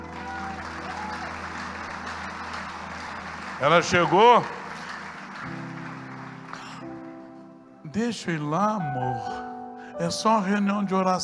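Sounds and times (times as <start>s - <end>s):
crowd clapping: 0.0s - 7.4s
speech: 3.6s - 4.6s, 7.9s - 11.2s.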